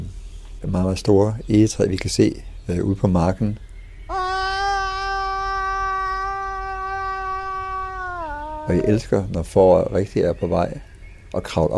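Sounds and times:
speech: 0.6 - 3.7, 8.7 - 11.7
man screaming from a tree: 4.1 - 9.0.

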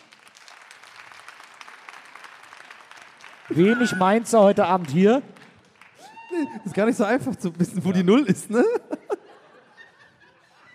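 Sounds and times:
audience applause: 0.0 - 8.2
laughter: 3.5 - 4.4, 6.3 - 10.7
speech: 3.5 - 5.3, 6.4 - 8.8.

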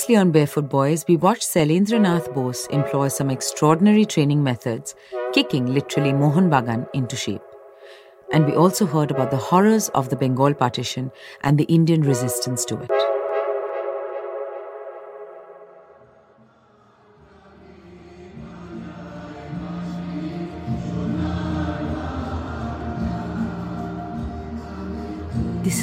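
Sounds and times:
horn-like notes: 0.0 - 11.1, 12.0 - 25.8
speech: 0.1 - 7.5, 8.3 - 13.2
stadium crowd singing a national anthem: 16.6 - 25.8.

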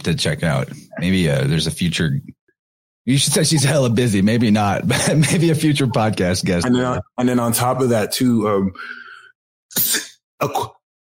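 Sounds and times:
speech: 0.0 - 2.4, 3.0 - 9.0, 9.7 - 10.8
laughter: 3.1 - 7.6
person sneezing: 9.8 - 10.7.

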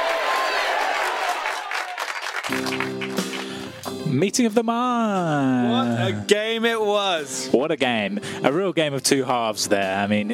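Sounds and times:
round of applause: 0.0 - 3.8
speech: 4.1 - 10.3.

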